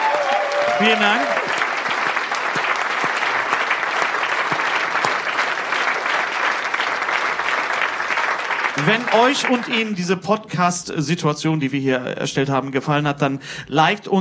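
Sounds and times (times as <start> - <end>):
audience applauding: 0.0 - 10.2
speech: 0.8 - 1.4, 8.8 - 14.2.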